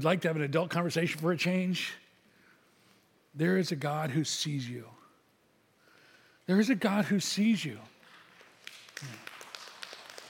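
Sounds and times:
speech: 0.0s - 2.0s, 3.4s - 5.0s, 6.5s - 7.9s, 9.0s - 9.3s
a few people applauding: 8.0s - 10.2s.

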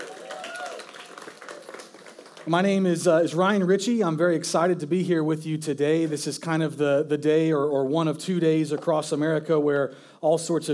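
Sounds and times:
audience applause: 0.0s - 2.5s
speech: 2.4s - 10.7s.

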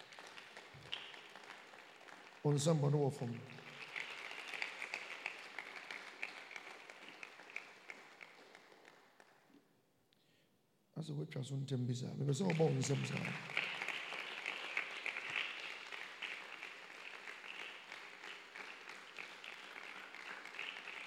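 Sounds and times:
audience clapping hands: 0.0s - 9.5s, 12.3s - 21.0s
speech: 2.4s - 3.6s, 11.1s - 13.6s.

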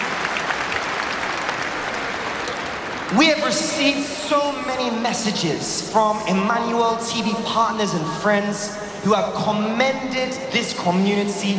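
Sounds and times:
audience applauding: 0.0s - 4.1s
speech: 3.1s - 11.5s.

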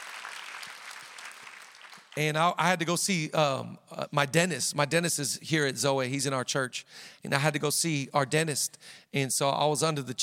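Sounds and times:
audience applause: 0.0s - 2.2s
speech: 2.2s - 10.2s.

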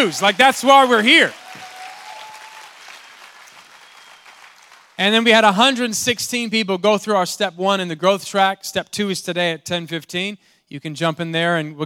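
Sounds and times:
speech: 0.0s - 1.4s, 5.0s - 11.8s
audience clapping hands: 0.0s - 5.3s.

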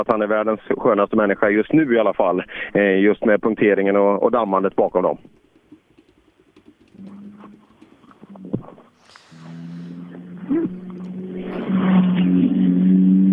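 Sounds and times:
speech: 0.0s - 5.4s
rally car engine arriving at finish: 9.7s - 13.3s.

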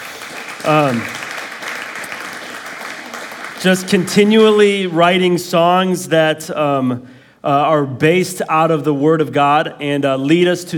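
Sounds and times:
crowd clapping: 0.0s - 5.3s
speech: 0.6s - 1.2s, 3.6s - 10.7s.

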